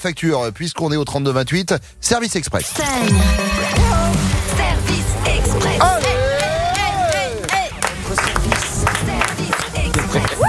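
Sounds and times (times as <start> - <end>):
speech: 0.0 - 6.0
recorded crowd applause and cheering sound effect on a radio show: 5.2 - 10.4.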